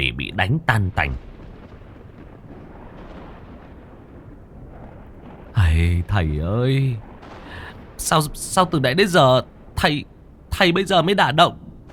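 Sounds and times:
speech: 0:00.1 - 0:01.3, 0:05.8 - 0:07.4, 0:08.0 - 0:11.6
lightning strike thunder crash: 0:00.9 - 0:10.4.

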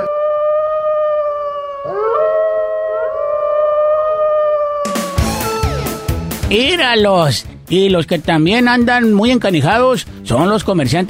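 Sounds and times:
coyotes howling: 0:00.0 - 0:06.4
speech: 0:06.5 - 0:11.0.

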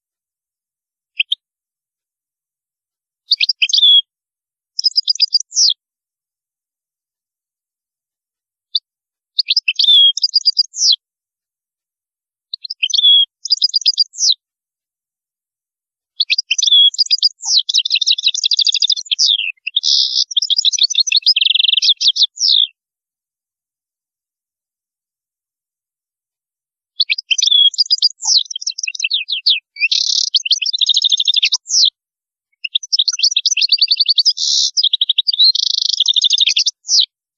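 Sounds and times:
European goldfinch singing: 0:03.3 - 0:04.1, 0:04.8 - 0:05.8, 0:09.4 - 0:11.0, 0:12.5 - 0:14.4, 0:16.2 - 0:22.7, 0:27.0 - 0:31.9, 0:32.6 - 0:37.1.

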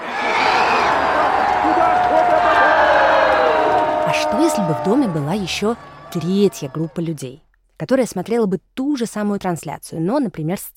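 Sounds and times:
people cheering and shouting at a scored goal: 0:00.0 - 0:07.3
high whoops: 0:00.2 - 0:07.0
speech: 0:04.3 - 0:10.7.

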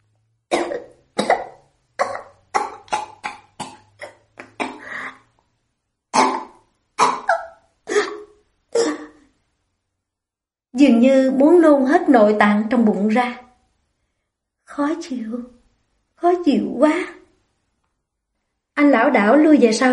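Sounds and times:
dry coughing after being choked: 0:00.5 - 0:05.2, 0:06.1 - 0:09.2
speech: 0:10.8 - 0:13.4, 0:14.8 - 0:15.6, 0:16.2 - 0:17.2, 0:18.8 - 0:19.9.

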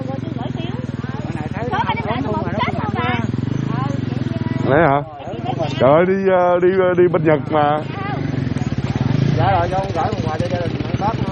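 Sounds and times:
motorbike engine chugging as the bike is turned around: 0:00.0 - 0:11.3
people talking loudly: 0:00.0 - 0:11.3
speech: 0:04.7 - 0:05.1, 0:05.8 - 0:08.0, 0:09.4 - 0:11.3.

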